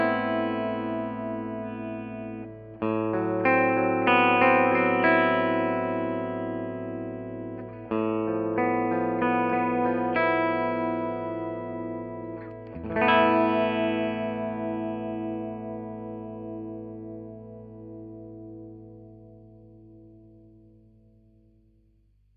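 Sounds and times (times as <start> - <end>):
clean electric guitar on bridge pickup: 0.0 - 22.0.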